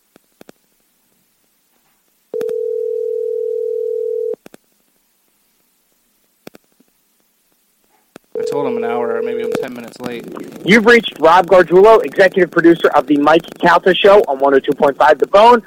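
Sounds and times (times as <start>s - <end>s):
phone ringback tone waiting for pickup: 2.4s - 4.4s, 8.4s - 9.7s
speech: 8.6s - 15.6s.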